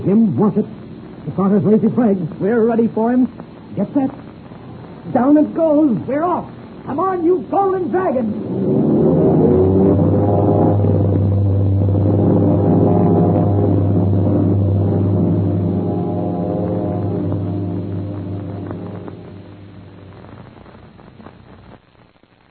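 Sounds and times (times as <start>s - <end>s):
speech: 0.0s - 4.2s, 5.0s - 9.8s
four airliner engines roaring at race start: 6.9s - 20.6s.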